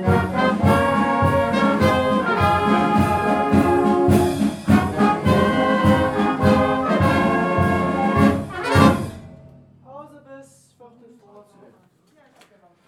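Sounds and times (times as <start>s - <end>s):
polka trio rehearsing with a music society: 0.0s - 9.4s.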